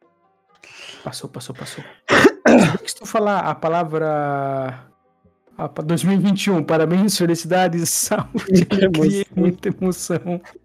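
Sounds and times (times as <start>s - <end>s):
speech: 1.0s - 4.9s, 5.6s - 10.6s
person coughing: 1.6s - 3.0s, 8.4s - 9.4s
throat clearing: 1.7s - 3.0s
laughter: 7.8s - 10.3s.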